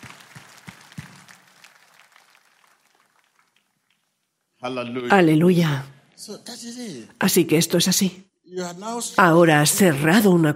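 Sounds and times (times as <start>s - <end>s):
applause: 0.0s - 4.4s
speech: 4.6s - 10.5s.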